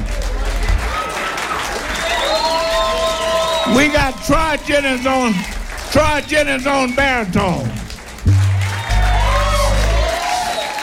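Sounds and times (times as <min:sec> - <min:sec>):
applause for the band: 0:00.0 - 0:10.8
speech: 0:03.7 - 0:07.8.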